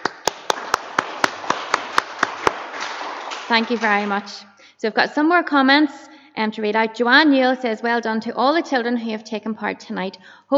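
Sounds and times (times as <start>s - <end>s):
audience clapping: 0.0s - 4.5s
speech: 3.5s - 10.5s.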